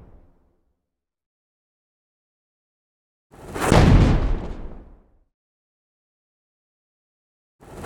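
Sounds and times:
potion exploding: 3.6s - 4.7s.

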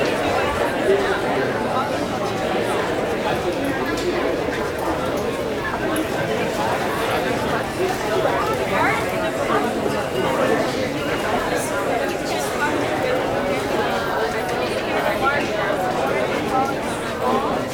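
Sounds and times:
small indoor crowd walla in a room: 0.0s - 17.7s.

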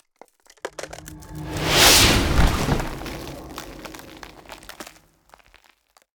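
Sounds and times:
ice spell cold whooshes: 0.8s - 5.0s.

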